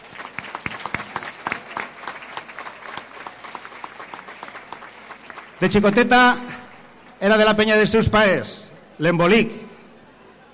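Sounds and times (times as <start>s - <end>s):
audience applause: 0.0s - 7.2s
speech: 5.6s - 6.6s, 7.2s - 9.6s.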